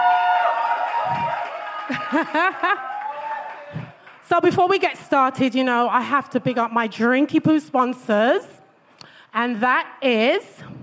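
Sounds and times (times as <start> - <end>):
live audience cheering and whooping: 0.0 - 4.0
laughter: 1.9 - 3.0
speech: 2.1 - 2.9, 4.3 - 8.6, 9.3 - 10.6.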